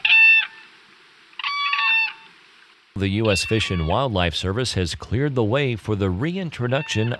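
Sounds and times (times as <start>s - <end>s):
whooping crane calls: 0.0s - 2.4s, 3.0s - 4.1s, 6.6s - 7.1s
speech: 3.0s - 7.1s.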